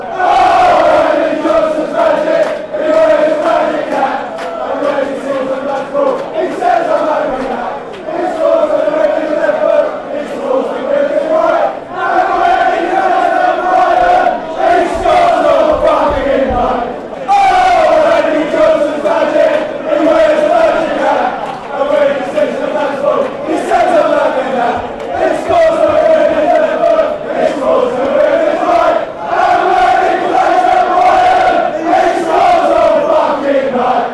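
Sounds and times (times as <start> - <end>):
fans chanting: 0.0 - 34.1.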